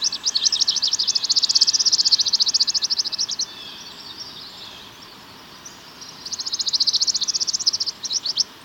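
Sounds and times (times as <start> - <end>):
Palm Warbler Setophaga palmarum calling: 0.0 - 8.5.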